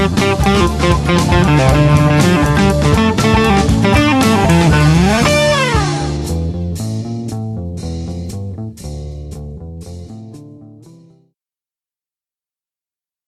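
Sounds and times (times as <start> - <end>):
bourrée dance music: 0.0 - 6.5.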